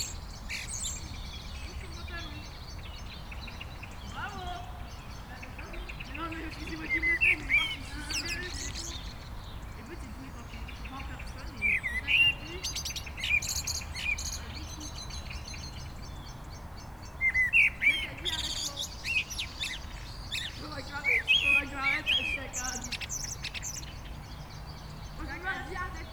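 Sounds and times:
Eurasian blackbird singing mellow warbled phrases in a garden in Aix-les-Bains, France: 0:00.0 - 0:26.1.

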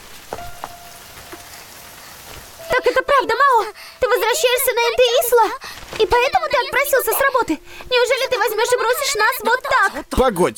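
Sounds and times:
rain: 0:00.0 - 0:08.0
speech: 0:03.2 - 0:10.5.

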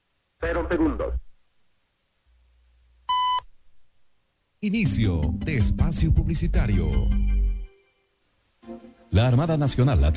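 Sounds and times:
speech: 0:00.4 - 0:01.2, 0:04.6 - 0:07.4, 0:09.1 - 0:10.1
Ecuadorian Navy Oceanographic Institute radio time signal beep: 0:03.1 - 0:03.4.

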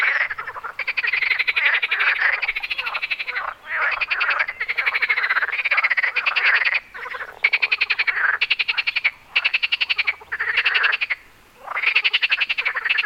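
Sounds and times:
frog calls at Wyspa Sobieszewska in Gdańsk, Poland: 0:00.0 - 0:13.0.

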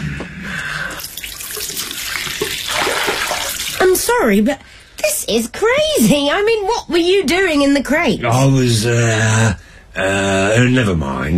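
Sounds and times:
water running from a tap into a glass: 0:00.9 - 0:03.9
speech: 0:03.9 - 0:11.3.

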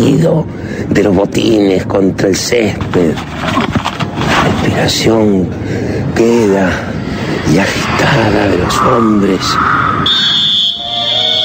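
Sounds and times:
speech: 0:00.0 - 0:03.8, 0:04.4 - 0:09.7
referee's whistle blast: 0:09.8 - 0:11.4.

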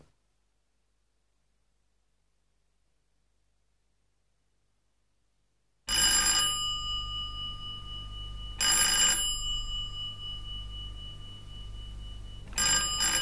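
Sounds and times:
bell ringing: 0:05.9 - 0:13.1
low steady hum: 0:06.0 - 0:13.1.

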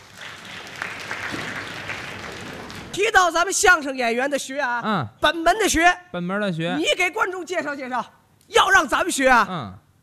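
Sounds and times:
audience applause welcoming crosstalk comedy performers: 0:00.0 - 0:03.0
speech: 0:03.0 - 0:09.8.

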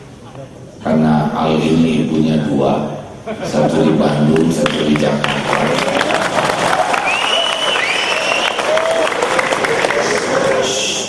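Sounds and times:
speech: 0:00.4 - 0:05.9
audience applause: 0:04.4 - 0:11.0
high whistles: 0:06.9 - 0:09.0.

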